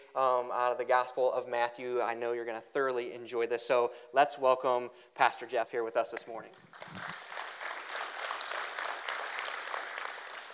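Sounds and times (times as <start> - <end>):
speech: 0.2 - 7.2
audience applause: 6.6 - 10.5.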